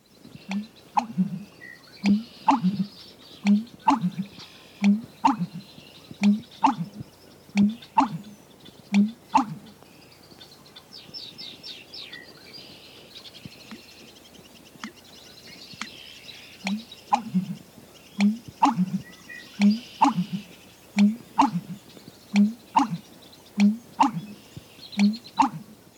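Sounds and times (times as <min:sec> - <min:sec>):
other birds trilling and chirping: 0:00.3 - 0:25.9
American Bittern pumping song: 0:00.4 - 0:09.8, 0:15.8 - 0:25.9.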